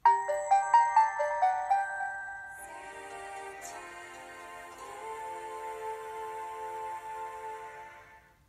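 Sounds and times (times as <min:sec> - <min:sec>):
ringtone: 0:00.0 - 0:04.9.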